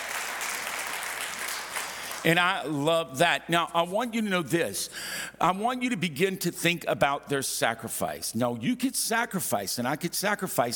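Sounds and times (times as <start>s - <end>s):
audience clapping hands: 0.0s - 2.4s
speech: 2.2s - 10.7s.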